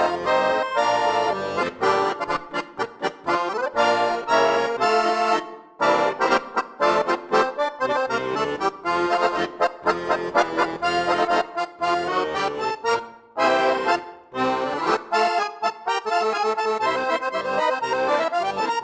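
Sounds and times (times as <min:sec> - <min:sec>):
German polka on accordion: 0:00.0 - 0:18.8.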